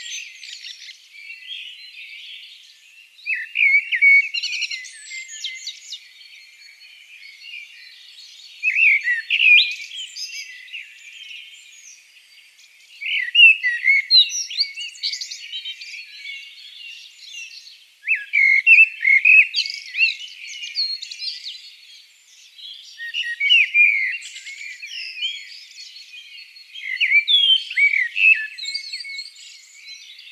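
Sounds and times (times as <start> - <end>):
Eurasian blackbird singing: 0.0 - 30.3
background bird twittering: 0.0 - 30.3.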